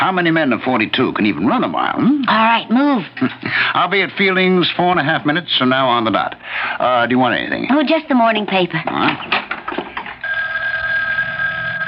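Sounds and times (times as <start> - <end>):
speech: 0.0 - 9.8
telephone bell ringing: 10.2 - 11.8.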